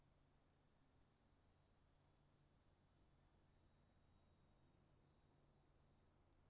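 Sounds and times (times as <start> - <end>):
cicadas buzzing: 0.1 - 6.4.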